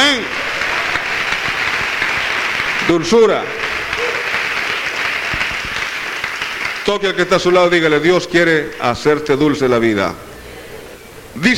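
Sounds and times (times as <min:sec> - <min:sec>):
church congregation applauding the Lord: 0:00.0 - 0:08.8
speech: 0:02.9 - 0:03.6, 0:06.9 - 0:10.3, 0:11.4 - 0:11.5.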